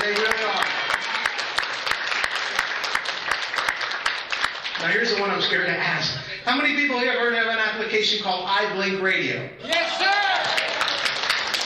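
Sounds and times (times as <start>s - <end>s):
audience applause: 0.0s - 5.3s, 9.7s - 11.6s
speech: 4.8s - 9.8s.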